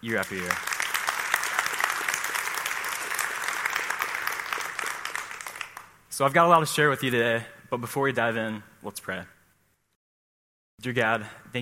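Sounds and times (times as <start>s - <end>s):
speech: 0.0s - 0.7s, 6.2s - 9.4s, 10.8s - 11.6s
audience applause: 0.0s - 6.0s.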